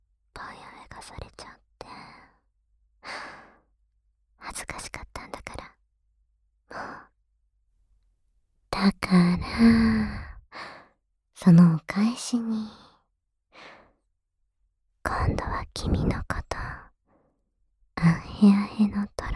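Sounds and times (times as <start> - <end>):
double whispering: 0.4 - 2.3, 4.4 - 5.8, 8.8 - 10.4, 11.4 - 12.9, 15.1 - 16.9, 18.0 - 19.3.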